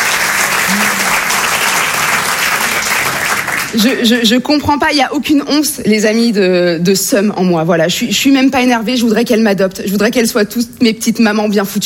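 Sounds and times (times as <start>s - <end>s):
audience applauding with hands: 0.0s - 4.2s
speech: 3.8s - 11.8s.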